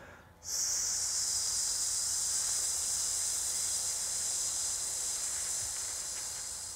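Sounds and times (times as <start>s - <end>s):
sustained hissing exhale on S: 0.4s - 6.7s.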